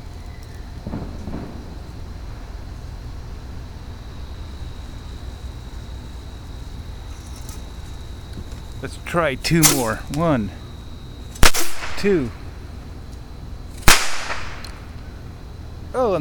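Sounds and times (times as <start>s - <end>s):
steady wash of outdoor noise: 0.0s - 16.1s
firework shell bursting with a deep booming report: 0.8s - 2.1s, 9.5s - 10.2s, 11.3s - 12.6s, 13.7s - 15.0s
speech: 8.8s - 10.6s, 12.0s - 12.4s.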